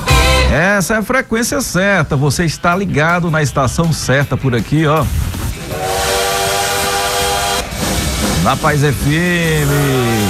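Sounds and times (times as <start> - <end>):
speech: 0.5 - 5.3, 8.4 - 10.2
hissing rumbling roll of a moving train: 2.8 - 10.2
train whistle sound effect: 5.6 - 8.4, 9.6 - 10.2.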